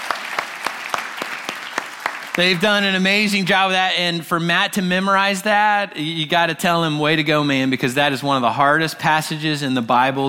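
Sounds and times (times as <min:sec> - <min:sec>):
audience applause for worship team: 0:00.0 - 0:02.6
speech: 0:02.4 - 0:10.2.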